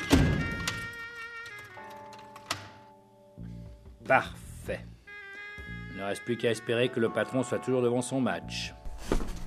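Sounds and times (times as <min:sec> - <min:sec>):
door being closed: 0:00.0 - 0:01.0
speech: 0:04.1 - 0:04.9, 0:06.0 - 0:09.2.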